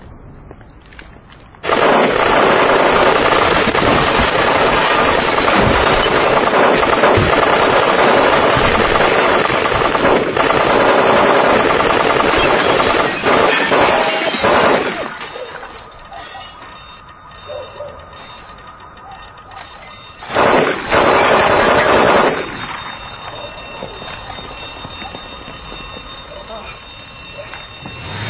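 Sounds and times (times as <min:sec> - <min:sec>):
automatic gunfire: 0:01.6 - 0:15.4, 0:20.0 - 0:24.0.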